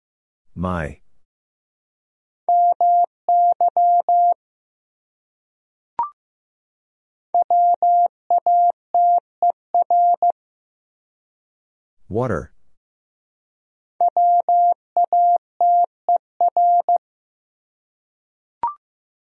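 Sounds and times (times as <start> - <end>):
speech: 0.6 - 1.0, 12.1 - 12.5
Morse code tones: 2.5 - 4.4, 7.4 - 10.3, 14.1 - 15.9, 16.5 - 17.0.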